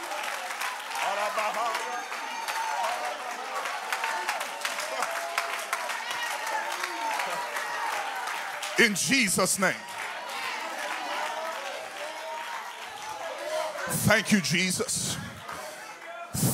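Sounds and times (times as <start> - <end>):
audience clapping hands: 0.0 - 16.5
laughter: 1.0 - 2.0, 8.8 - 9.8, 13.8 - 15.7
speech: 1.3 - 2.2, 8.8 - 9.9, 14.0 - 15.4.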